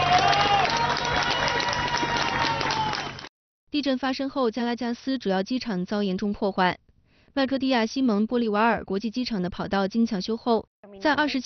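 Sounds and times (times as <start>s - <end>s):
hand claps: 0.0s - 3.3s
rescuers and residents cheering: 0.0s - 3.3s
speech: 3.8s - 6.8s, 7.4s - 11.4s.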